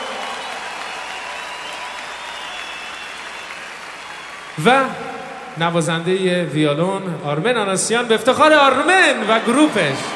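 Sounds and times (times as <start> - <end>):
concert audience applause for the musicians: 0.0 - 5.8
speech: 4.6 - 5.0, 5.6 - 10.1.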